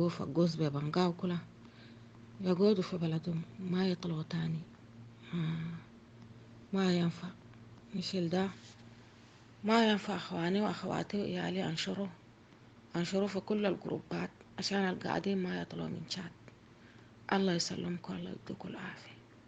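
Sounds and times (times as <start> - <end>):
vocals: 0.0 - 1.5, 2.4 - 5.9, 6.7 - 7.4, 9.7 - 12.2, 12.9 - 16.4, 17.3 - 19.2.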